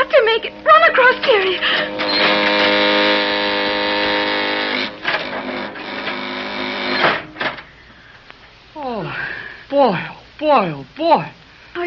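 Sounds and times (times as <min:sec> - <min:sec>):
elevator car coming down a shaft: 0:00.0 - 0:07.7
speech: 0:09.8 - 0:11.8.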